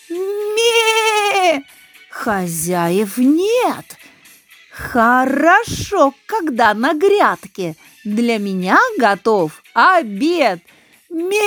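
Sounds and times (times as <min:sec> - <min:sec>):
goat bleating: 0:00.5 - 0:01.6
speech: 0:01.6 - 0:04.1, 0:04.8 - 0:11.4.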